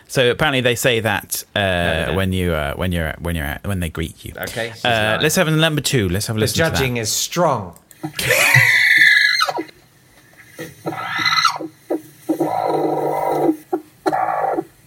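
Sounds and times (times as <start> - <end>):
speech: 0.1 - 8.8
chicken squawking: 8.0 - 9.8, 10.8 - 14.8.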